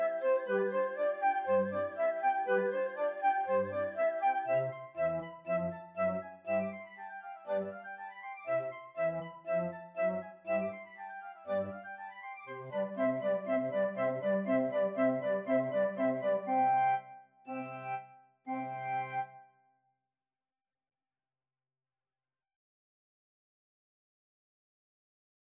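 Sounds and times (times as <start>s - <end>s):
flute: 0.0s - 19.6s.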